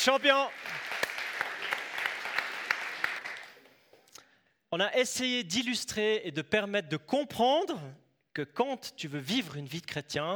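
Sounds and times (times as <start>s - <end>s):
speech: 0.0s - 0.8s, 4.7s - 10.3s
audience applause: 0.0s - 4.0s.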